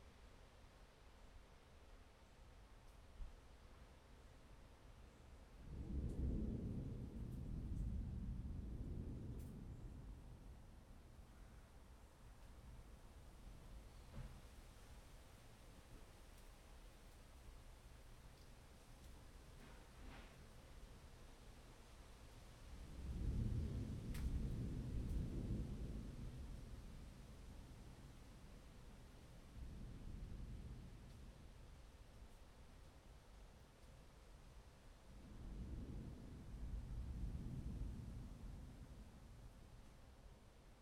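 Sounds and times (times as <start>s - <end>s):
thunderstorm: 5.6s - 16.1s, 18.7s - 33.3s, 34.2s - 40.7s.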